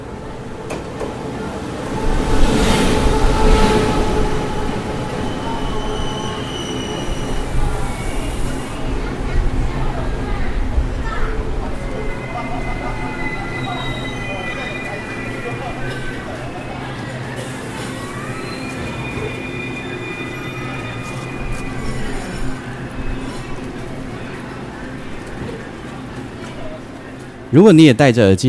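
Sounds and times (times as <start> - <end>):
train roaring past a station platform: 0.0 - 27.6
train brake squeals: 2.5 - 9.1, 11.8 - 24.3
speech: 27.5 - 28.4.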